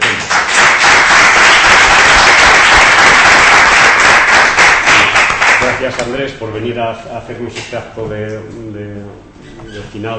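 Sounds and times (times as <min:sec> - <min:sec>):
audience applause: 0:00.0 - 0:06.0
speech: 0:05.8 - 0:08.8, 0:09.8 - 0:10.1.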